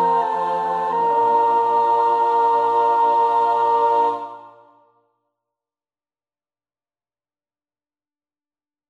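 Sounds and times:
soprano singing: 0:00.0 - 0:04.8.

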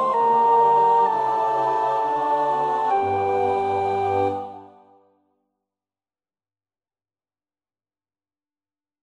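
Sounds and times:
soprano singing: 0:00.0 - 0:05.0.

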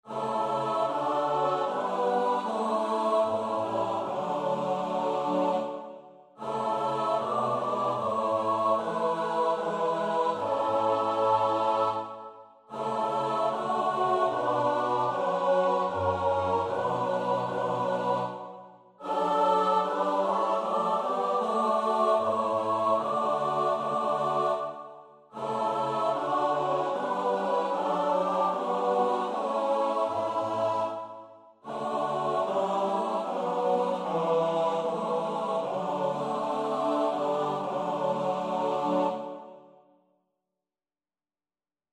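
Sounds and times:
soprano alto tenor bass voices: 0:00.0 - 0:05.8, 0:06.4 - 0:24.8, 0:25.4 - 0:39.4.

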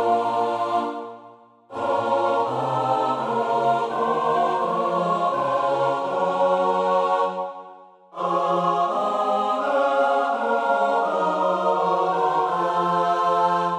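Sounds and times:
SATB choir singing in four parts: 0:00.0 - 0:13.7.

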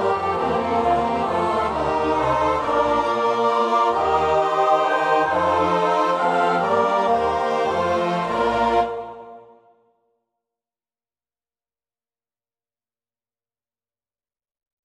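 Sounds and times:
four-part choir singing: 0:00.0 - 0:09.7.

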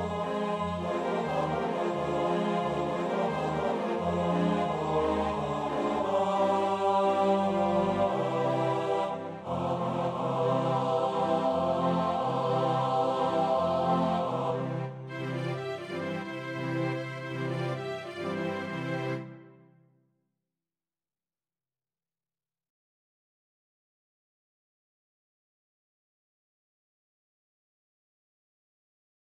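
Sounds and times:
SATB choir part practice: 0:00.0 - 0:19.4.

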